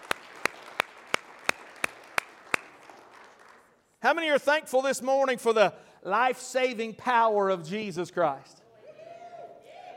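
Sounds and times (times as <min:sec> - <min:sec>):
audience hand clapping: 0:00.0 - 0:03.9
speech: 0:04.0 - 0:08.6.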